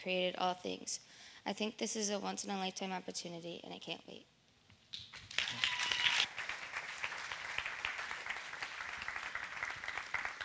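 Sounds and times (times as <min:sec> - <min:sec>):
speech: 0:00.0 - 0:04.3
audience applause and cheering: 0:05.2 - 0:10.4.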